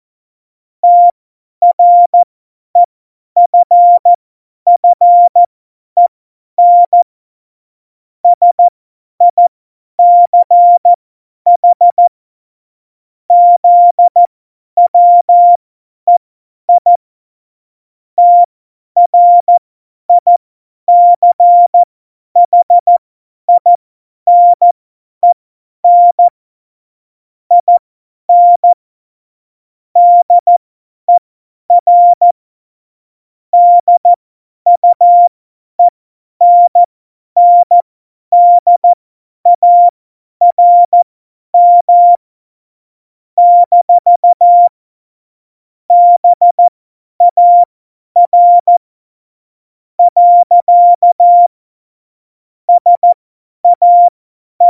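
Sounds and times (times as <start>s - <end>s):
CW Morse code beeps: 0.8s - 2.2s, 3.5s - 4.1s, 4.7s - 5.5s, 6.6s - 7.0s, 8.4s - 10.9s, 11.6s - 12.1s, 13.3s - 14.3s, 14.9s - 16.2s, 16.8s - 17.0s, 18.2s - 18.5s, 19.1s - 26.3s, 27.5s - 28.8s, 30.0s - 32.4s, 33.6s - 41.0s, 41.6s - 42.2s, 43.4s - 44.8s, 45.9s - 48.8s, 50.0s - 51.5s, 52.7s - 54.6s.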